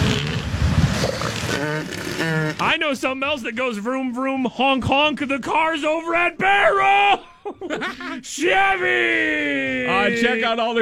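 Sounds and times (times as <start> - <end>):
elephant seals bellowing mating calls: 0.0 - 2.7
speech: 1.8 - 10.7
laughter: 6.8 - 8.6.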